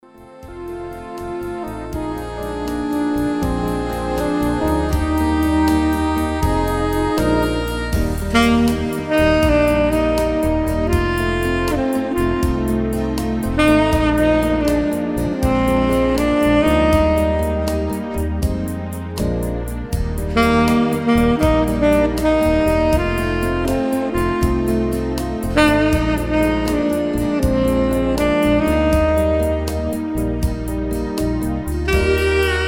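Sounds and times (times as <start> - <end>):
saxophone instrumental: 0.0 - 32.6.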